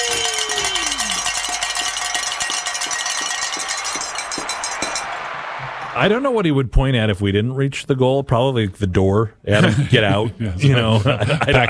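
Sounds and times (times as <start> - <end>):
bell ringing: 0.0 - 6.0
speech: 6.0 - 11.6
laughter: 9.5 - 11.6.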